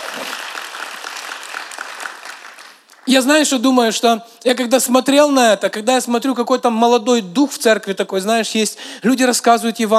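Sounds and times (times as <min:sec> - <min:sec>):
audience applause: 0:00.0 - 0:03.1
speech: 0:03.1 - 0:09.9.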